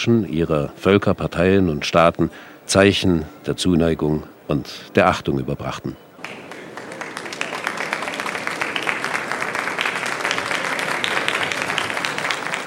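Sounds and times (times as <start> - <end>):
speech: 0.0 - 6.4
guests applauding at state reception: 6.2 - 12.6.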